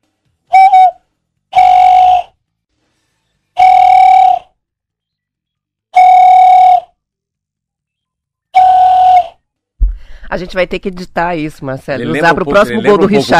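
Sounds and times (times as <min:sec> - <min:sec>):
person making a whistled call used to summon a dog: 0:00.5 - 0:02.4, 0:03.6 - 0:04.6, 0:05.9 - 0:07.0, 0:08.5 - 0:09.4
speech: 0:10.3 - 0:13.3.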